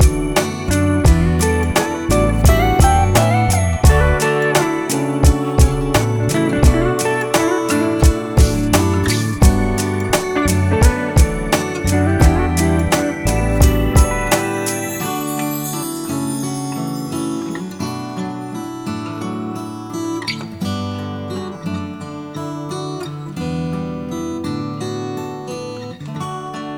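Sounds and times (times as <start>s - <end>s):
full off-vocal instrumental version: 0.0s - 20.0s.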